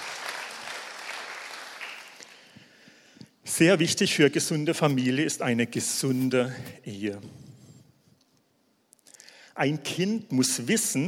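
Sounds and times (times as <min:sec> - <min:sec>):
crowd applauding: 0:00.0 - 0:02.4
speech: 0:03.5 - 0:07.5, 0:09.6 - 0:11.0.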